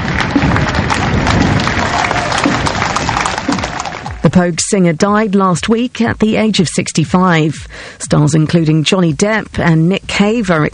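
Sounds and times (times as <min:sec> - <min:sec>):
crowd gathered in Dublin: 0:00.0 - 0:04.4
speech: 0:04.4 - 0:10.7.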